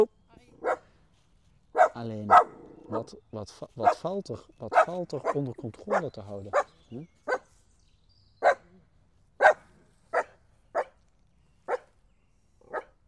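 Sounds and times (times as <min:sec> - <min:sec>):
small dogs barking: 0:00.5 - 0:00.9, 0:01.7 - 0:03.2, 0:03.8 - 0:07.6, 0:08.4 - 0:08.7, 0:09.4 - 0:11.0, 0:11.6 - 0:12.0, 0:12.6 - 0:13.0
speech: 0:02.0 - 0:07.3.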